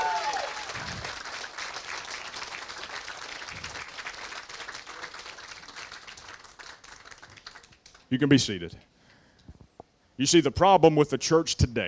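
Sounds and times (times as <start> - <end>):
crowd clapping: 0.0 - 8.2
speech: 8.1 - 8.9, 10.2 - 11.8.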